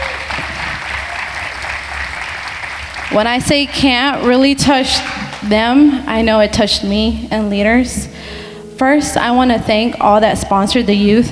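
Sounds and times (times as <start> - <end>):
audience applause: 0.0 - 3.8
speech: 3.1 - 11.2.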